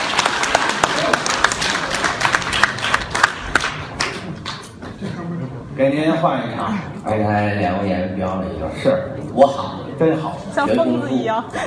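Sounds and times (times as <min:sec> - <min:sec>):
audience applause: 0:00.0 - 0:04.8
speech: 0:05.8 - 0:11.6.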